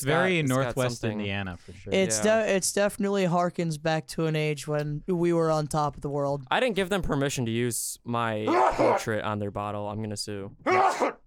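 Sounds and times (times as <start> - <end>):
speech: 0.0 - 11.2
exaggerated voiced sneeze blended into spoken words: 10.7 - 11.2.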